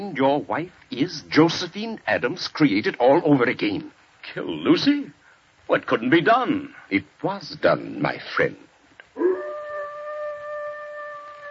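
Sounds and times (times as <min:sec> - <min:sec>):
speech: 0:00.0 - 0:09.3
dog howling: 0:09.2 - 0:11.4.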